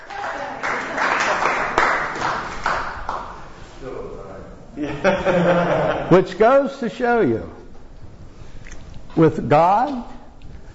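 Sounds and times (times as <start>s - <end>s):
audience applauding and cheering: 0.0s - 3.4s
laughter: 4.8s - 6.2s
speech: 5.0s - 7.6s, 9.2s - 10.1s.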